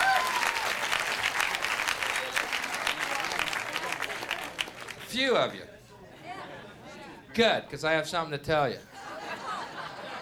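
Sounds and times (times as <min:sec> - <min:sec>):
audience applause: 0:00.0 - 0:05.1
speech: 0:05.1 - 0:05.7, 0:07.4 - 0:08.9
laughter: 0:06.1 - 0:07.2, 0:08.9 - 0:10.2.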